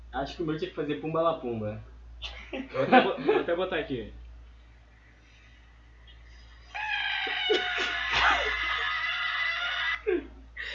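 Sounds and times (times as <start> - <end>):
speech: 0.1 - 4.2
frog screaming: 6.6 - 10.1.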